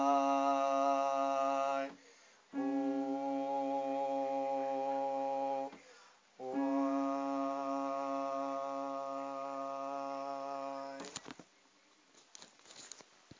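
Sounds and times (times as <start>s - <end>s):
soprano singing: 0.0s - 5.8s, 6.4s - 11.1s.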